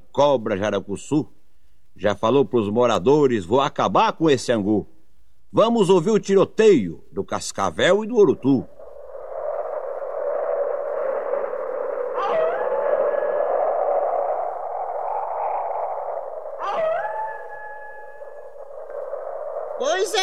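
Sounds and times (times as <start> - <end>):
speech: 0.2 - 1.4, 2.0 - 4.9, 5.5 - 8.8
howling wind: 7.8 - 20.2.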